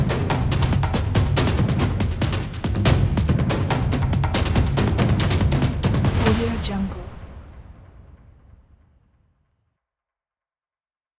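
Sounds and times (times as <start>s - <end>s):
action industrial percussion beat: 0.0s - 6.8s.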